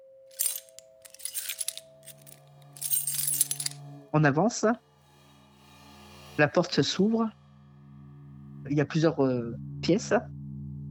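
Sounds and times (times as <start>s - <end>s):
keys jangling: 0.4s - 3.8s
speech: 4.1s - 4.9s, 6.4s - 7.4s, 8.7s - 10.4s.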